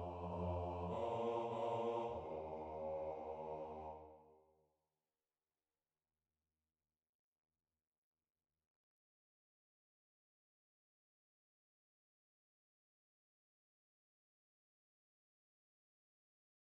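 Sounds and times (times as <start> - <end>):
bass choir voices: 0.0 - 4.3.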